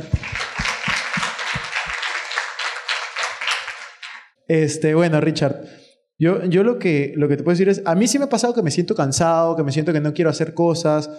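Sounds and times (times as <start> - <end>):
audience applause: 0.0 - 4.3
speech: 4.5 - 11.1.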